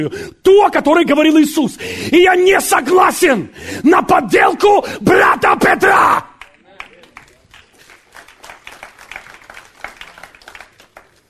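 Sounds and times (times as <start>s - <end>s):
speech: 0.0s - 6.3s
weak audience applause: 6.4s - 11.2s.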